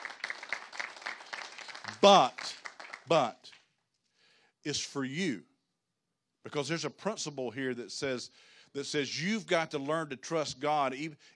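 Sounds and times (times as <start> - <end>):
people cheering: 0.0 - 3.0
speech: 2.0 - 3.4, 4.6 - 5.5, 6.4 - 11.3.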